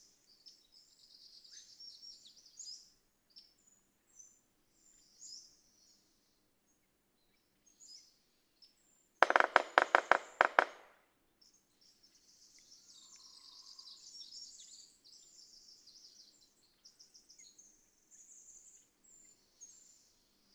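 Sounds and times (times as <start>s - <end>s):
red-breasted sapsucker drumming: 9.2s - 10.9s.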